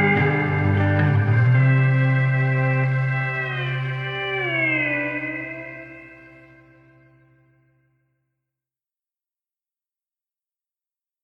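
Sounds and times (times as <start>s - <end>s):
instrumental music: 0.0s - 7.7s.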